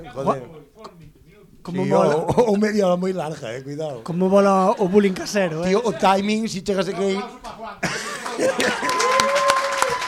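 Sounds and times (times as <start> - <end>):
speech: 0.0 - 1.0, 1.6 - 9.4
laughter: 4.5 - 6.3, 7.0 - 9.3
audience applause: 8.1 - 10.0
person cheering: 8.6 - 10.0.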